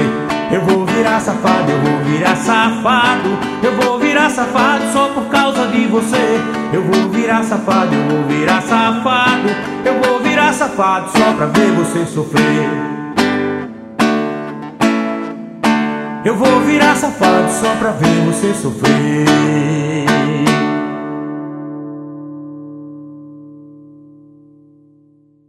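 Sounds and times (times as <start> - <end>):
person singing with acoustic guitar: 0.0 - 13.2, 16.2 - 20.9
acoustic guitar: 0.0 - 25.4.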